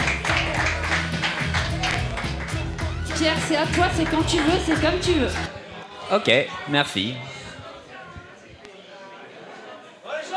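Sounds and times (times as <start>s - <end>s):
live audience applause greeting a columnist: 0.0s - 5.5s
speech: 3.2s - 5.5s, 6.1s - 7.3s.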